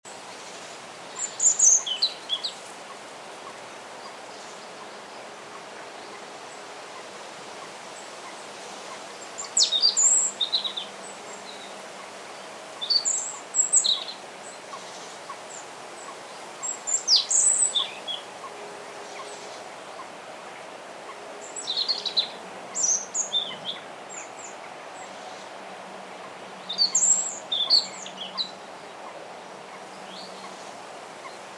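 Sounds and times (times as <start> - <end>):
steady hiss: 0.1 - 31.5
European robin singing: 1.1 - 2.6, 9.4 - 11.7, 12.8 - 20.1, 21.1 - 25.4, 26.3 - 30.6.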